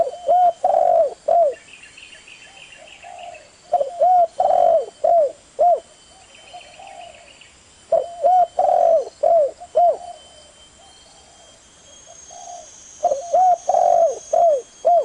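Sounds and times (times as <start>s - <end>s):
Spotted Dove cooing: 0.0s - 1.6s, 2.4s - 15.0s.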